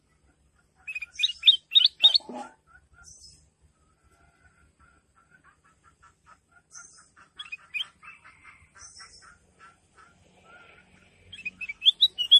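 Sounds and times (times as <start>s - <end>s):
Sooty-headed bulbul giving short bright chirpy phrases: 0.8s - 2.3s, 6.7s - 8.2s, 11.3s - 12.3s.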